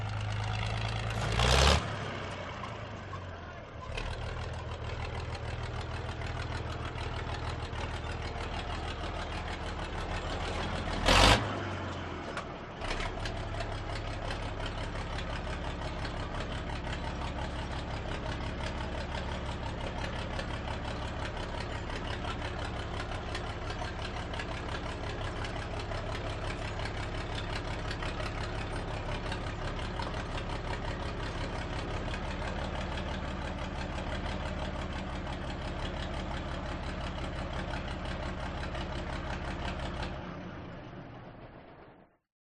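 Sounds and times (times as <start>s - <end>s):
1939 Matilda Mark 2 tank parking, slowly approaching, passing and parking: 0.0s - 42.2s.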